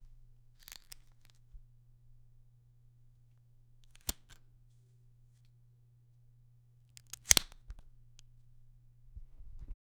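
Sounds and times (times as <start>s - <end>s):
lens matte box opening: 0.6s - 1.4s, 3.8s - 4.4s, 7.0s - 7.9s.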